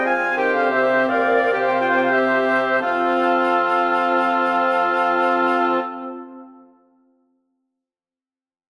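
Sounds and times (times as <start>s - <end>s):
woodwind quintet playing: 0.0s - 6.8s.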